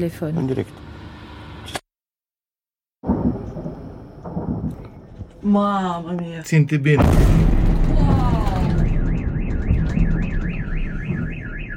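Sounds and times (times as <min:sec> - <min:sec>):
speech: 0:00.0 - 0:00.9, 0:05.4 - 0:08.0
low rumbling and clatter: 0:03.0 - 0:05.5, 0:07.0 - 0:11.5
car alarm wailing: 0:08.3 - 0:11.7.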